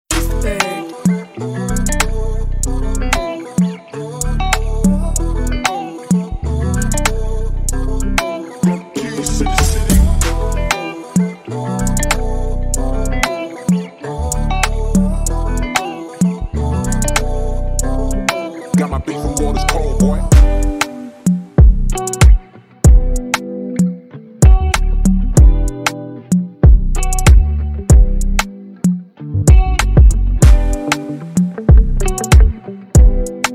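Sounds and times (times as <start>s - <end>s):
instrumental music: 0.1s - 33.5s.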